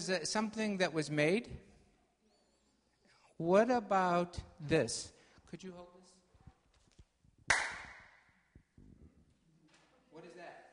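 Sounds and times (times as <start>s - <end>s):
speech: 0.0s - 1.7s, 3.4s - 5.9s
sharp loud hand clap: 7.5s - 8.2s.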